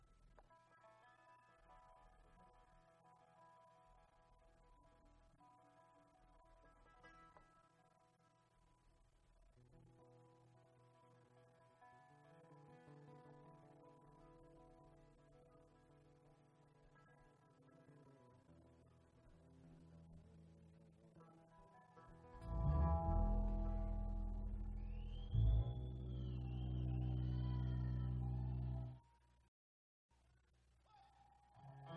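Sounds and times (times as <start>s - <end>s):
bluegrass music: 22.0s - 28.9s.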